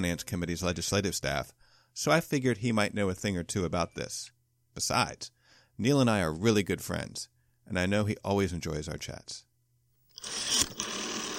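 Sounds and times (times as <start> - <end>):
speech: 0.0 - 9.5, 10.2 - 10.9
telephone being dialed: 10.2 - 11.3.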